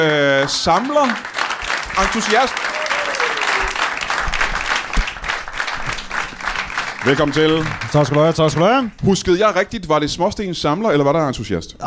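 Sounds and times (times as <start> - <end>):
speech: 0.0 - 1.3, 1.9 - 2.7, 7.0 - 11.8
audience applause welcoming a guest: 0.0 - 9.1.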